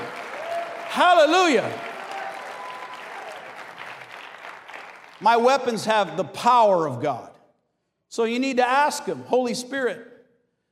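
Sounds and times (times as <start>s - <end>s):
audience clapping: 0.0s - 6.2s
speech: 1.0s - 1.9s, 5.2s - 7.3s, 8.1s - 10.1s.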